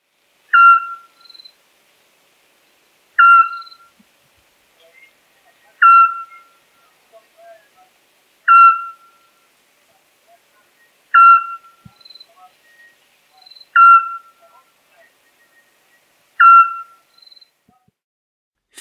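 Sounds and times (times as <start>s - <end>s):
Eurasian scops owl whistled hoots: 0.5s - 1.5s, 3.2s - 4.0s, 5.8s - 6.6s, 8.5s - 9.3s, 11.1s - 14.4s, 16.4s - 17.4s.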